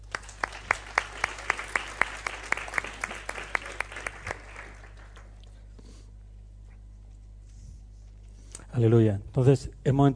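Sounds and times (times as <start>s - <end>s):
audience applause: 0.0s - 5.5s
speech: 8.8s - 10.1s.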